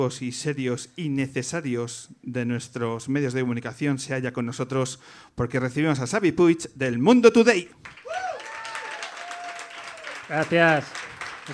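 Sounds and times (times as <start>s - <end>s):
speech: 0.0s - 8.0s, 10.3s - 11.5s
audience applause greeting a guest: 7.8s - 11.5s.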